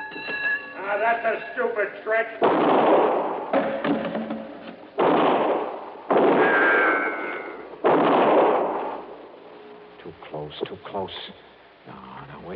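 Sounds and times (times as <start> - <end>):
speech: 0.9 - 3.3, 10.4 - 12.5
gunshots: 2.4 - 9.3.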